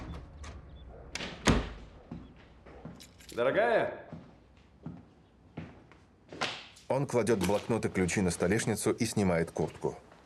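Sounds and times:
patio door clunks as someone steps into a kitchen: 0.0s - 2.0s
speech: 3.4s - 4.0s, 6.9s - 10.1s.

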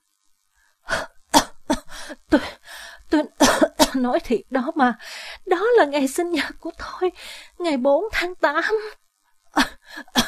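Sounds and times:
woman coughing with her head pressed toward a tank of ethanol: 1.4s - 1.9s, 3.4s - 4.0s, 9.6s - 10.2s
speech: 2.3s - 2.5s, 4.0s - 10.2s.

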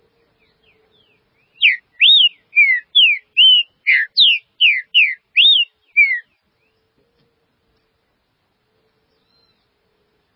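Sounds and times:
Green-winged saltator whistled song: 0.4s - 6.8s, 9.1s - 9.7s.

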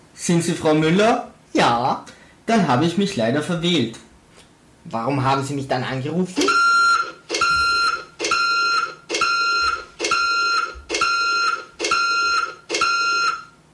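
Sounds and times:
speech: 0.2s - 4.0s, 4.8s - 6.6s
truck reversing warning beeper: 6.4s - 13.6s.

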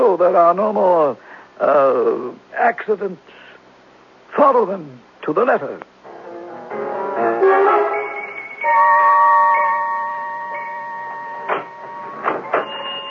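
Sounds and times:
speech: 0.2s - 3.4s, 4.3s - 5.9s
alarm ringing: 7.6s - 13.0s.

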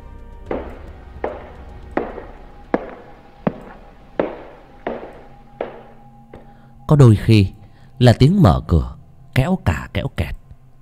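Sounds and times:
slow heavy footsteps on wooden floor: 0.5s - 6.5s
speech: 6.9s - 10.4s.

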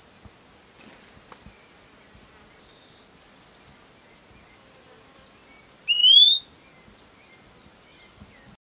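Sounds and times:
Fuscous flycatcher Cnemotriccus fuscatus giving a rising whistled note: 5.8s - 6.5s.

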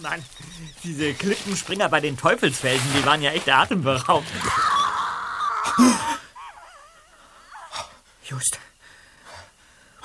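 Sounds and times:
speech: 0.0s - 4.9s, 5.8s - 6.1s, 8.3s - 8.7s
distant scream: 4.3s - 6.2s.

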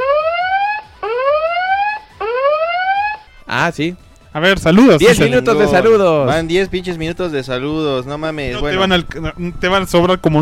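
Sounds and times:
timer alarm with rising electronic whoop: 0.0s - 3.2s
speech: 3.6s - 10.4s.

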